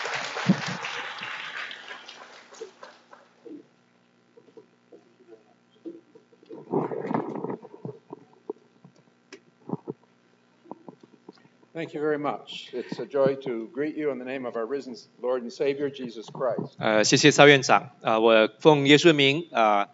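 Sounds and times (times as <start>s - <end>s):
audience applause welcoming a speaker: 0.0s - 3.5s
speech: 11.8s - 19.9s.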